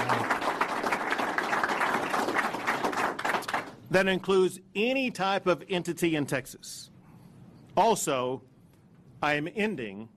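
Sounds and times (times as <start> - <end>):
audience clapping: 0.0 - 3.9
speech: 3.9 - 6.9, 7.8 - 8.5, 9.2 - 10.1.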